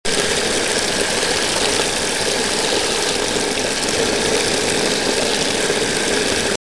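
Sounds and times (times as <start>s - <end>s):
waterfall: 0.1s - 6.5s.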